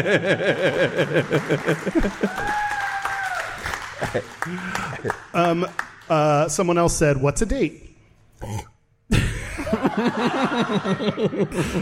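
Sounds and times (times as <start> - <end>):
laughter: 0.0 - 2.7, 3.7 - 5.2, 9.1 - 11.8
speech: 0.0 - 2.7, 4.0 - 9.2, 9.8 - 11.8
audience applause: 0.0 - 6.2
voices whooping and calling out: 2.2 - 3.8.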